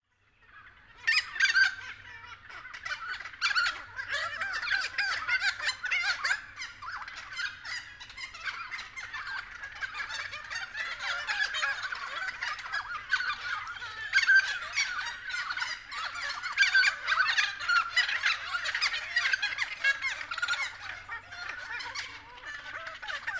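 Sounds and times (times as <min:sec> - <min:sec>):
friarbirds calling: 0:00.1 - 0:23.3.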